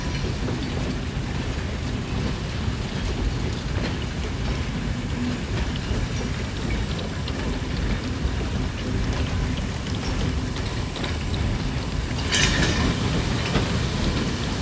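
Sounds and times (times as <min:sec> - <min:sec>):
steam locomotive: 0:00.0 - 0:14.5.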